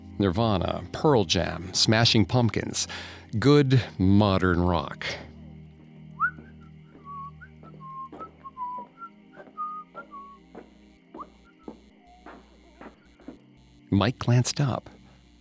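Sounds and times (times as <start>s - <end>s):
speech: 0.2s - 5.3s, 13.9s - 15.0s
man whistling: 6.2s - 10.4s.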